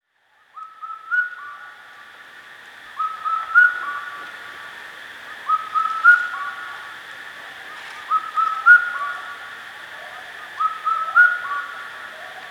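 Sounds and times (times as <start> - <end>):
Indian cuckoo whistling its four-note song: 0.5 - 1.8, 3.0 - 4.2, 5.4 - 6.8, 7.7 - 9.4, 10.0 - 12.4.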